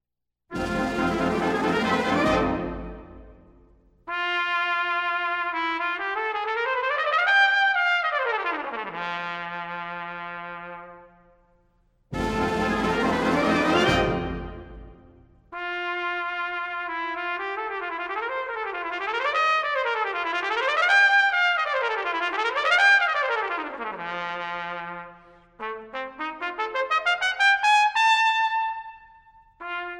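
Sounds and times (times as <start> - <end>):
trumpet polka: 0.5 - 11.1, 12.1 - 29.9.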